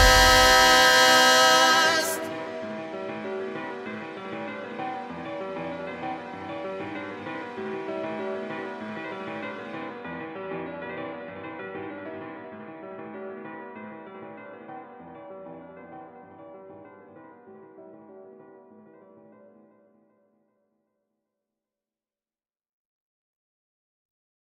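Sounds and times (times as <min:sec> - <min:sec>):
Synthesizer V synthesized voice singing a cover: 0:00.0 - 0:02.5.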